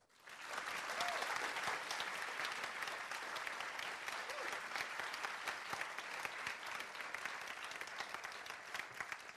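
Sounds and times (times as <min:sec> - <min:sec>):
audience applause from a large crowd: 0:00.0 - 0:09.3
whoops and cheers: 0:00.9 - 0:01.4, 0:04.2 - 0:04.6.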